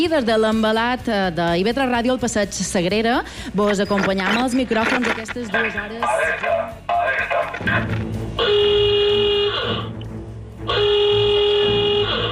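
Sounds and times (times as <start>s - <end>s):
speech: 0.0s - 8.9s
noisy background: 0.0s - 12.3s
electronic alarm effect on IB3 Ràdio buzzing: 3.6s - 6.3s, 8.4s - 10.0s, 10.7s - 12.3s.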